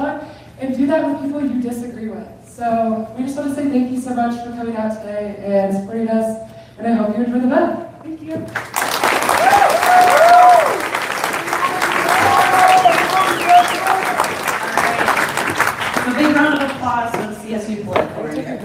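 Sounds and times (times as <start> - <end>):
speech: 0.6 - 10.2
audience applause: 8.5 - 17.0.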